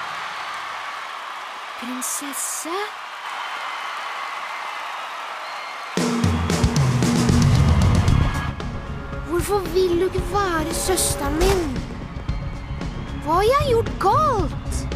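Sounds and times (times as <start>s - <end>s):
audience applause: 0.0s - 8.6s
speech: 1.8s - 3.0s, 9.4s - 11.9s, 13.3s - 14.8s.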